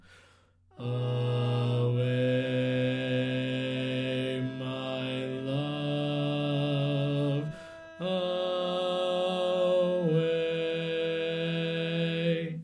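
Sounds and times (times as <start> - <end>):
barbershop bass voice singing: 0.8 - 12.5.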